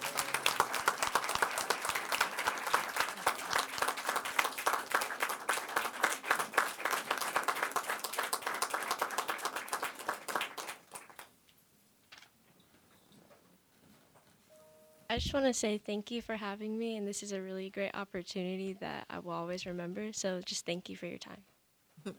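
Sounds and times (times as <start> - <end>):
crowd applauding: 0.0 - 11.3
speech: 15.2 - 22.1.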